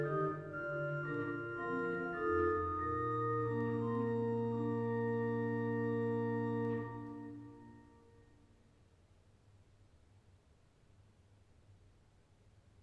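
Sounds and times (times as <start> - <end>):
Waldflöte flute: 0.0 - 8.3.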